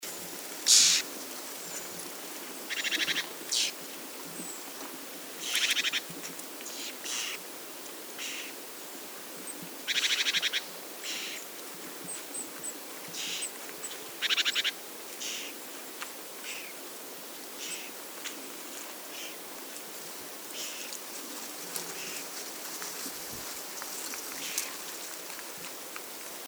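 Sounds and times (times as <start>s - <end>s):
background hiss: 0.0s - 26.4s
Eurasian wren churring: 0.7s - 1.0s, 2.7s - 3.7s.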